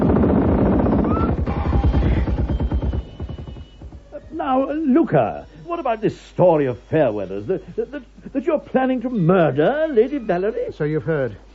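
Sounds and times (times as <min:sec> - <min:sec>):
machine gun fire from a car: 0:00.0 - 0:05.0
deep rumbling car engine drone: 0:00.0 - 0:06.0
speech: 0:04.7 - 0:11.5.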